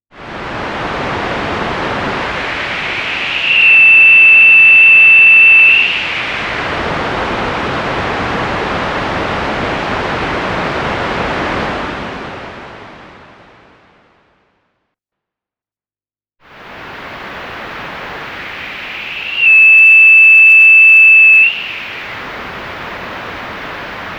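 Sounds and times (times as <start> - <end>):
bandpass filtered noise: 1.0 - 8.9, 16.8 - 24.1.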